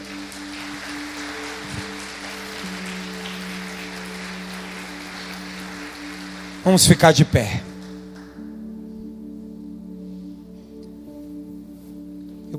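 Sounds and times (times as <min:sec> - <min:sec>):
audience applause: 0:00.0 - 0:08.4
low sustained keyboard chord: 0:00.0 - 0:12.5
speech: 0:06.6 - 0:07.7.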